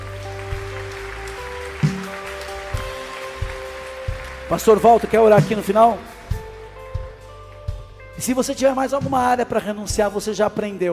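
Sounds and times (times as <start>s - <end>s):
audience applause: 0.0s - 6.6s
sustained keyboard chords: 0.0s - 10.9s
speech: 4.5s - 6.1s, 8.2s - 10.9s.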